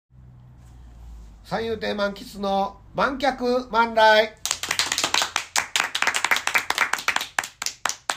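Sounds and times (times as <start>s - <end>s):
speech: 1.5s - 4.4s
audience clapping: 4.4s - 8.1s.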